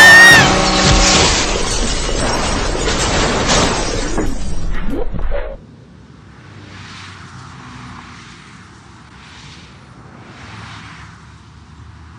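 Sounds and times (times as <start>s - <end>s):
car crash of crunching metal and shattering glass: 0.0s - 5.6s
car tires squealing: 0.0s - 5.6s
debris rattling and scraping: 0.4s - 5.6s.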